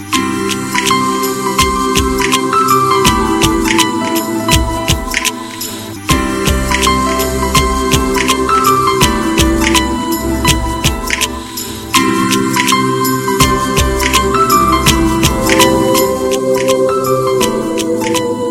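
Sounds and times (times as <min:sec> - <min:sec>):
soft music: 0:00.0 - 0:18.5.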